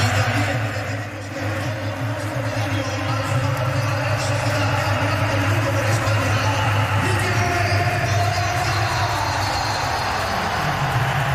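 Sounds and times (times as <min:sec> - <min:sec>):
stadium crowd applauding at the Bernabéu: 0:00.0 - 0:11.3.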